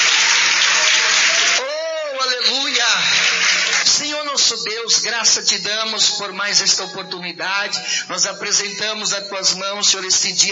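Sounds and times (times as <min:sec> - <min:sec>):
audience clapping hands: 0:00.0 - 0:04.2
speech: 0:04.5 - 0:10.5.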